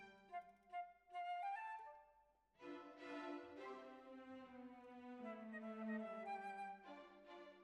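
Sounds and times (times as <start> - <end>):
clarinet: 0.1 - 2.1, 2.7 - 7.3.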